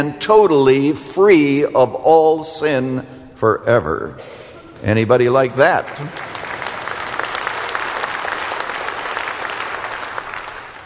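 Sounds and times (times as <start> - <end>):
speech: 0.0 - 6.3
crowd clapping: 4.8 - 10.8.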